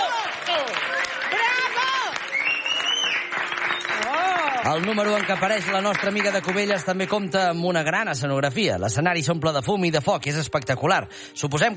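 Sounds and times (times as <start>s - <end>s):
audience applause and ovation: 0.0s - 7.6s
speech: 4.7s - 11.7s.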